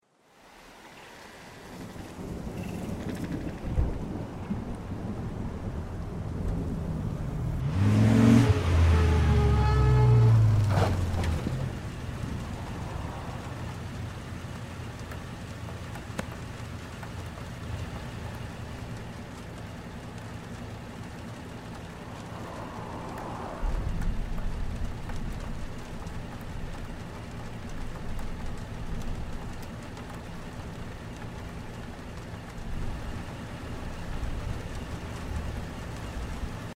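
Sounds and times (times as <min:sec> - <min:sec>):
rainy day ambience at school: 0:00.0 - 0:36.7.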